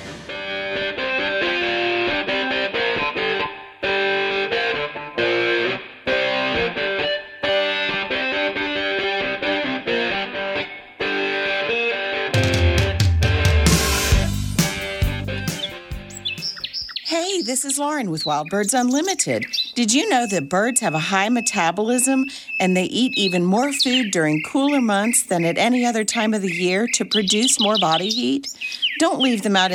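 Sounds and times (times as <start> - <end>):
music playing: 0.0 - 16.6
speech: 17.6 - 29.7.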